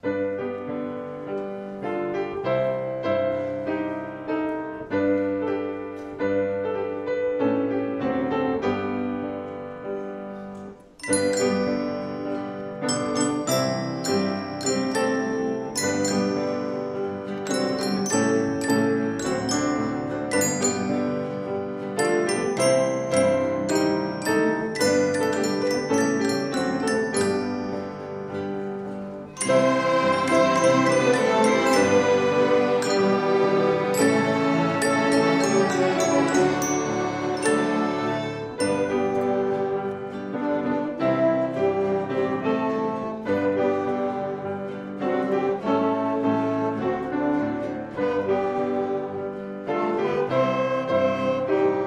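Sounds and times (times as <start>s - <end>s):
children's orchestra playing: 0.0s - 51.8s.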